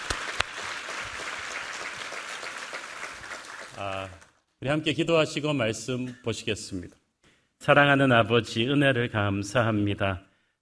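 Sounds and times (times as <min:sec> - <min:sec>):
audience applause: 0:00.0 - 0:04.3
speech: 0:03.8 - 0:07.0, 0:07.6 - 0:10.3.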